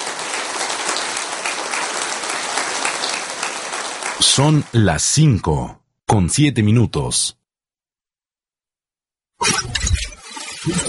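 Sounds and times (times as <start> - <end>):
applause: 0.0 - 5.7
speech: 4.2 - 7.4, 10.6 - 10.8.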